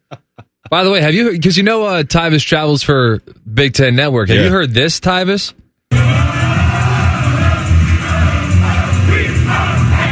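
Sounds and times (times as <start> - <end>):
speech: 0.7 - 5.6
student section crowd cheering: 5.9 - 10.1.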